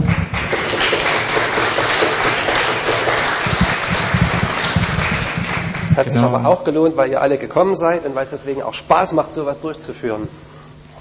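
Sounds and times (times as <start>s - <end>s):
audience clapping: 0.0s - 6.4s
speech: 6.0s - 10.6s.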